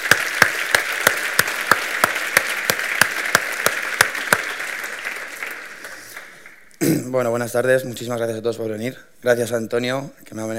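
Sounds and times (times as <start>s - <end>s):
audience applause: 0.0s - 6.7s
speech: 7.1s - 10.5s.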